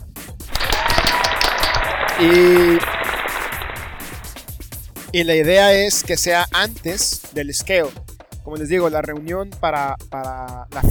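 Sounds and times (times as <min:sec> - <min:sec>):
audience applause: 0:00.5 - 0:04.5
speech: 0:02.2 - 0:02.9, 0:05.2 - 0:10.9.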